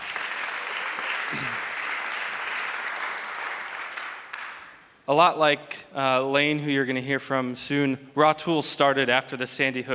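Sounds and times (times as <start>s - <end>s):
audience clapping: 0.0s - 5.0s
speech: 1.3s - 1.7s, 5.1s - 9.9s.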